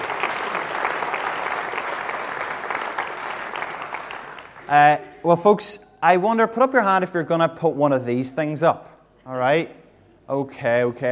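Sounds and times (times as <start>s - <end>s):
crowd applause: 0.0s - 5.1s
speech: 4.7s - 11.1s.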